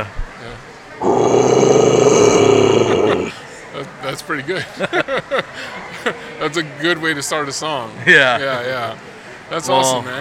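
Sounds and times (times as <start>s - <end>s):
man's metal vocal growl: 1.0s - 3.4s
speech: 4.2s - 10.1s
laughter: 4.6s - 6.2s.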